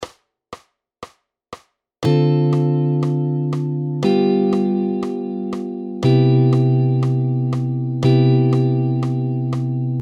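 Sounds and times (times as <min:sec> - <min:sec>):
2-5-1 chord progression in C: 0:02.0 - 0:10.0.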